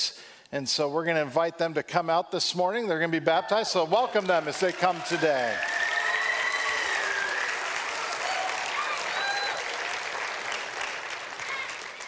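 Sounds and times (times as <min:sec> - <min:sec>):
speech: 0:00.0 - 0:05.7
church congregation applauding children about to be baptized: 0:03.8 - 0:12.0.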